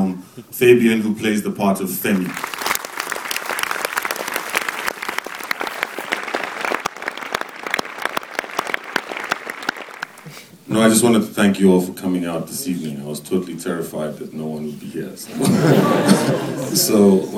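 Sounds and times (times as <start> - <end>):
speech: 0.4 - 2.6, 10.8 - 17.3
audience applause: 2.1 - 10.4
laughter: 15.3 - 17.3.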